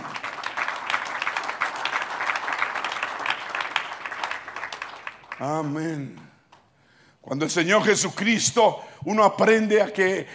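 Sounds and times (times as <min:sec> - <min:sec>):
audience applause: 0:00.0 - 0:05.7
speech: 0:05.4 - 0:06.3, 0:07.3 - 0:10.3.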